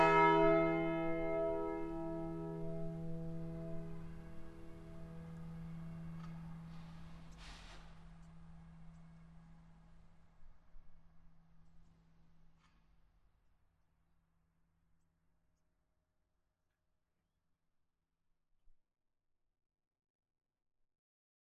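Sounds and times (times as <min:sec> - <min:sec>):
church bell ringing E and G sharp: 0:00.0 - 0:07.2.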